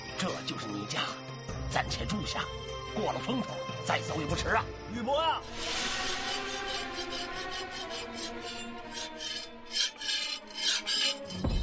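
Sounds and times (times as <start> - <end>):
speech: 0.2 - 6.0, 7.6 - 9.2
knife being sharpened: 5.7 - 11.5.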